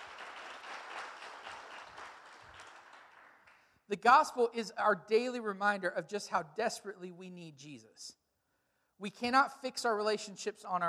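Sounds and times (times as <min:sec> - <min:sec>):
audience clapping: 0:00.0 - 0:03.8
speech: 0:03.9 - 0:08.2, 0:09.0 - 0:10.8.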